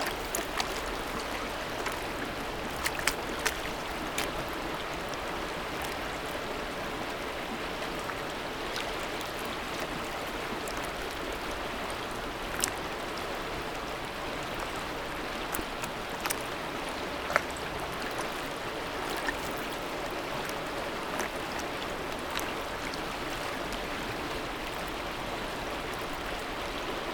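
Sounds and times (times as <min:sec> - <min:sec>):
small waves lapping: 0:00.0 - 0:27.1.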